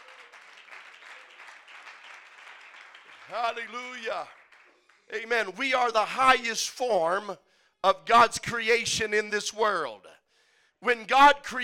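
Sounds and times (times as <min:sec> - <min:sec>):
audience clapping hands: 0:00.0 - 0:05.5
speech: 0:03.3 - 0:04.4, 0:05.1 - 0:10.1, 0:10.8 - 0:11.6.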